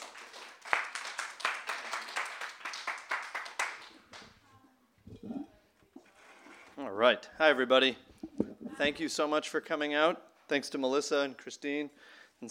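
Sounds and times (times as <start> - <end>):
bookstore audience applauding to welcome a speaker: 0.0 - 4.0
speech: 6.8 - 8.1, 8.8 - 12.4.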